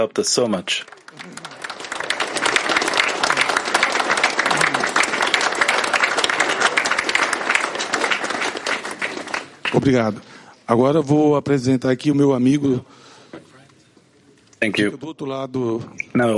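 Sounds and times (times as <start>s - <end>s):
speech: 0.0s - 1.5s, 9.7s - 13.0s, 14.6s - 16.3s
audience applause: 0.7s - 10.0s.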